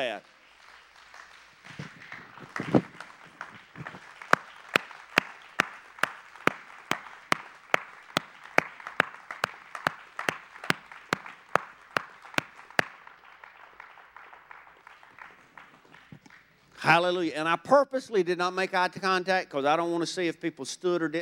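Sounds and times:
crowd clapping in unison: 0:00.2 - 0:16.6
speech: 0:16.9 - 0:21.2.

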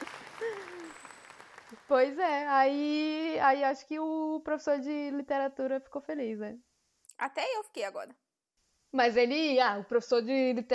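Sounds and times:
applause: 0:00.0 - 0:02.2
falling whoop-like tone: 0:00.4 - 0:01.0
speech: 0:01.9 - 0:08.2, 0:08.9 - 0:10.7.

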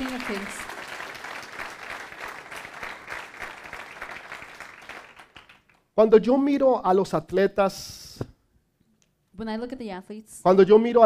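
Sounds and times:
audience applause: 0:00.0 - 0:05.8
speech: 0:00.3 - 0:00.7, 0:06.0 - 0:08.0, 0:09.4 - 0:11.0.

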